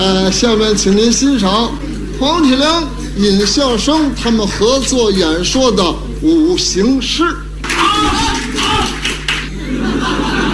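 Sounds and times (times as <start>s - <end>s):
speech: 0.0s - 7.4s
laughter: 0.5s - 3.8s, 7.7s - 10.5s
audience applause: 7.6s - 10.5s.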